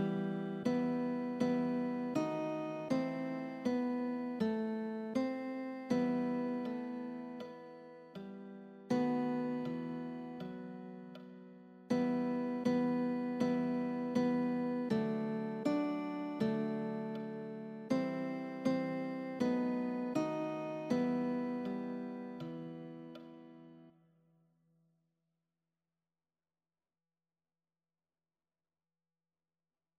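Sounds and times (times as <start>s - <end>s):
guitar: 0.0s - 23.9s.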